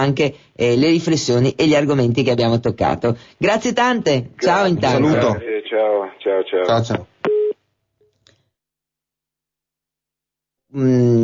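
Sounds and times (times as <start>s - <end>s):
speech: 0.0s - 7.1s, 10.7s - 11.2s
telephone busy signal tones in a radio studio control room: 7.3s - 7.6s.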